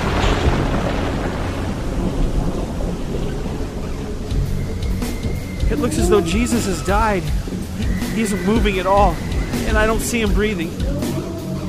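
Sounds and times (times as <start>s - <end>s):
earthquake rumble: 0.0s - 11.6s
speech: 5.7s - 7.5s, 8.2s - 11.0s.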